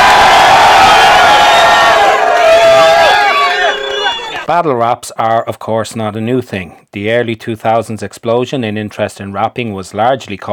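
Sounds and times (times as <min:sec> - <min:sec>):
crowd cheering and whooping: 0:00.0 - 0:04.5
speech: 0:04.5 - 0:10.5.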